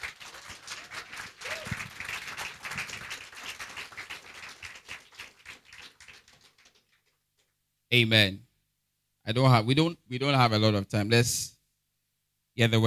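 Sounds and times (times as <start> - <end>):
audience clapping: 0.0 - 7.6
speech: 7.9 - 8.4, 9.3 - 11.5, 12.6 - 12.8.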